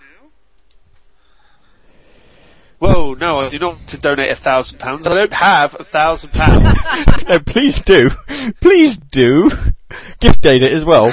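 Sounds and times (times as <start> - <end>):
computer mouse clicking on a donate button: 0.5 - 1.0
speech: 2.8 - 11.1
laughter: 5.2 - 8.6.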